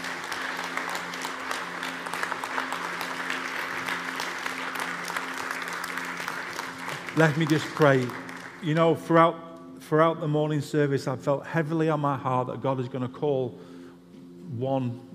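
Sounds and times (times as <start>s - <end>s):
church audience applause: 0.0s - 8.9s
speech: 7.2s - 13.7s, 14.5s - 15.1s.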